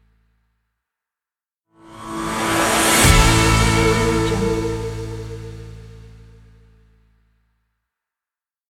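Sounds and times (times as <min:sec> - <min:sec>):
motivational epic sports intro ident music: 0:01.9 - 0:06.0.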